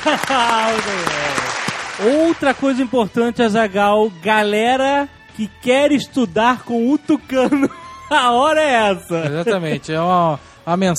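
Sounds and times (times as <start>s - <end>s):
laughter: 0.0s - 1.6s, 7.3s - 10.2s
applause: 0.0s - 3.0s
speech: 0.0s - 10.9s.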